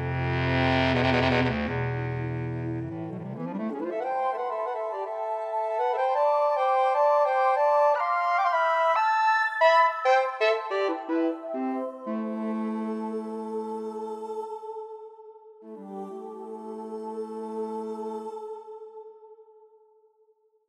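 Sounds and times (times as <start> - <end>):
alto saxophone: 0.0 - 5.3, 9.6 - 13.4
bass clarinet: 0.0 - 13.2
soprano saxophone: 0.0 - 14.3.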